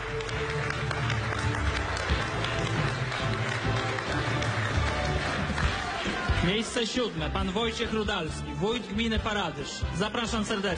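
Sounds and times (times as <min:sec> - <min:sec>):
crowd clapping: 0:00.0 - 0:08.3
speech: 0:06.4 - 0:10.7.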